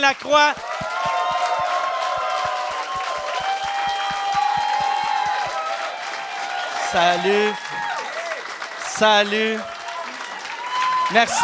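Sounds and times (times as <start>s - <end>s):
speech: 0.0s - 0.7s, 6.9s - 7.7s, 9.0s - 9.8s, 11.1s - 11.4s
audience applause: 0.0s - 11.4s
cheers and whoops: 0.6s - 8.8s, 9.6s - 11.4s.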